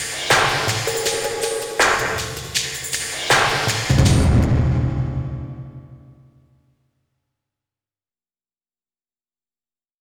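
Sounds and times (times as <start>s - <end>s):
drum and bass mix: 0.0s - 6.1s.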